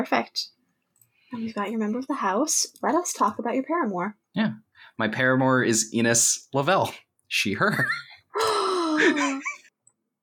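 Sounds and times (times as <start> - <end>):
speech: 0.0 - 0.6, 1.3 - 9.6
dramatic voiced gasp: 8.4 - 9.2.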